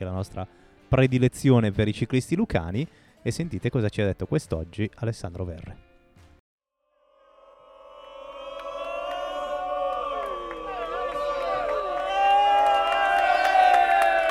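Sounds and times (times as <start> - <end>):
speech: 0.0 - 5.9
crowd cheering for a cyclist: 7.0 - 14.2.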